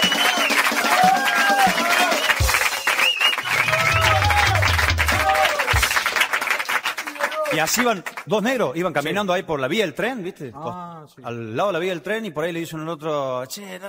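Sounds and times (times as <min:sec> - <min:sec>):
audience applause: 0:00.0 - 0:08.3
speech: 0:07.6 - 0:13.8.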